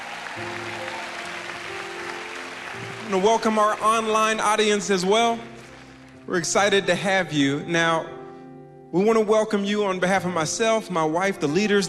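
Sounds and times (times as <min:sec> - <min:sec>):
congregation applauding first-time guests at a church service: 0:00.0 - 0:06.4
speech: 0:00.4 - 0:00.9, 0:03.1 - 0:05.5, 0:06.3 - 0:08.1, 0:08.9 - 0:11.8.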